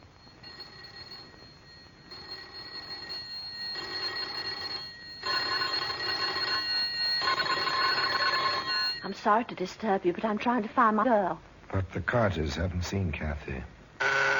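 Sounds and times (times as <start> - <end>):
electric doorbells ringing: 0.0 - 9.1, 14.0 - 14.3
speech: 9.2 - 13.7.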